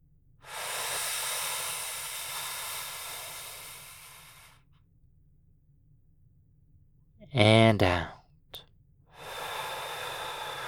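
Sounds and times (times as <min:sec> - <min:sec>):
deep breath in during a medical examination: 0:00.4 - 0:04.6, 0:09.1 - 0:10.6
speech: 0:07.3 - 0:08.2.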